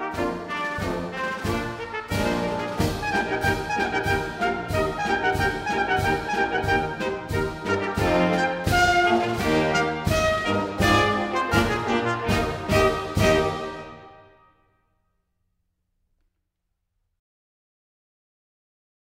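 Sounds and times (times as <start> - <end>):
wind quintet playing a march: 0.0 - 14.4.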